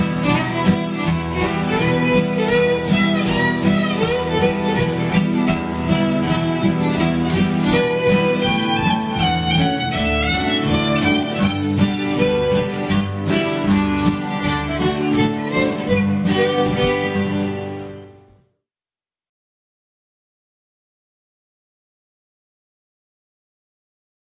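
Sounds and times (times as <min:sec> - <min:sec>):
waltz: 0:00.0 - 0:18.4.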